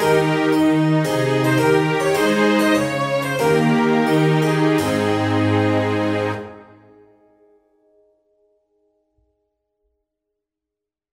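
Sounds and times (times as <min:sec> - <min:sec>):
trumpet tune: 0:00.0 - 0:07.0.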